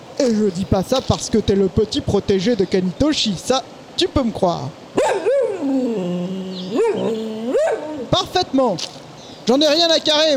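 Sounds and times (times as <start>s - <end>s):
speech: 0.2s - 10.3s
dog howling: 5.0s - 8.2s.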